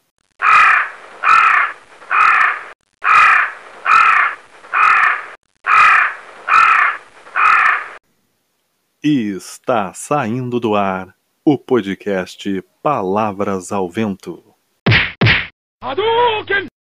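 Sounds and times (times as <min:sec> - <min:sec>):
crows cawing: 0:00.4 - 0:08.0
speech: 0:09.0 - 0:14.5, 0:15.9 - 0:16.7.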